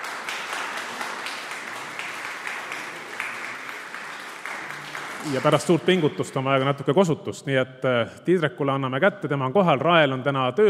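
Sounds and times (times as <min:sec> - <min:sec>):
applause: 0:00.0 - 0:06.2
speech: 0:05.2 - 0:10.6.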